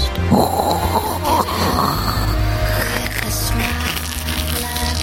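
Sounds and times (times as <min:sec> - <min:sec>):
voice imitating a stovetop coffee maker gurgling: 0:00.2 - 0:04.9.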